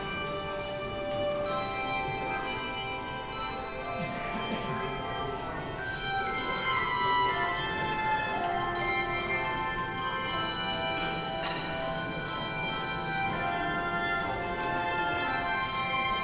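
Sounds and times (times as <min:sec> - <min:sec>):
handbells ringing: 0:00.0 - 0:16.2.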